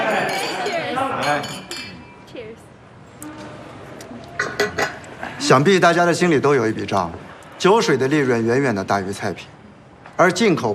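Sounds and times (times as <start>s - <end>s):
glasses clinking in a toast: 0.1s - 2.2s
speech: 5.5s - 9.6s, 10.2s - 10.7s.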